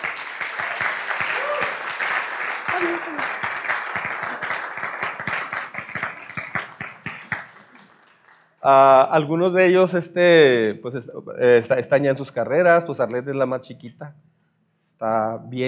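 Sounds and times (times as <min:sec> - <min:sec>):
audience applause: 0:00.0 - 0:08.5
speech: 0:08.6 - 0:14.2, 0:15.0 - 0:15.6.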